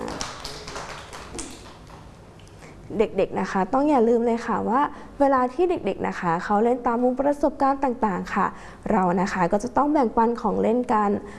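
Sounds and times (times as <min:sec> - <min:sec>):
children clapping hands: 0:00.0 - 0:02.1
speech: 0:02.9 - 0:11.3.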